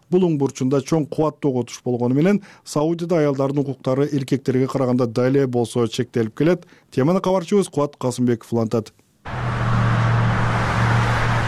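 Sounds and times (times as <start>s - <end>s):
speech: 0.1s - 9.6s
car traffic on the streets of Saudi Arabia: 9.3s - 11.4s.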